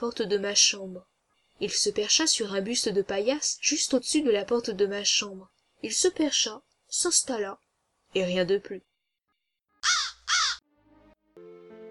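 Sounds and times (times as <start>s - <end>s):
speech: 0.0s - 8.9s
raven cawing: 9.8s - 10.6s.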